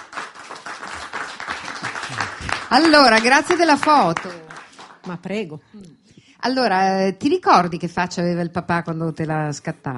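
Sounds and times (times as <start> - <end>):
audience applause: 0.0 - 5.1
speech: 2.7 - 4.4, 5.0 - 9.9.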